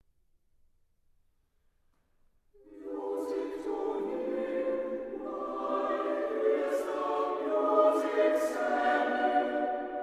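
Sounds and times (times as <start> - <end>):
vocal ensemble singing: 2.6 - 10.0.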